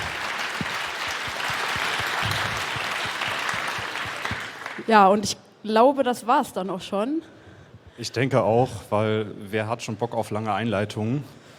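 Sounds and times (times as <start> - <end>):
crowd applause: 0.0 - 4.9
speech: 4.9 - 7.4, 8.0 - 11.4.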